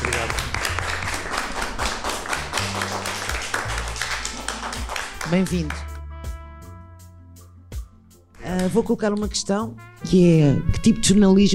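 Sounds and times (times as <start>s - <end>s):
applause: 0.0s - 6.0s
speech: 5.3s - 5.9s, 8.7s - 11.5s.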